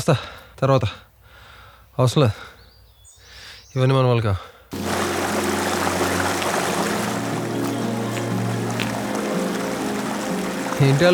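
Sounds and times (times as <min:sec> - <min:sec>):
speech: 0:00.0 - 0:01.1, 0:02.0 - 0:02.5, 0:03.7 - 0:05.0, 0:10.8 - 0:11.1
water rushing at Brigu waterfalls: 0:04.8 - 0:11.1.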